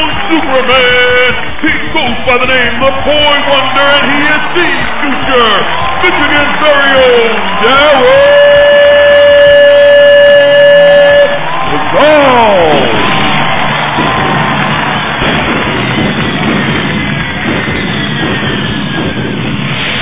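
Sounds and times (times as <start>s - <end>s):
arena crowd cheering a wrestler at a wrestling event: 0.0s - 20.0s
speech: 0.3s - 8.6s
crowd whoops and shouts: 3.0s - 19.4s.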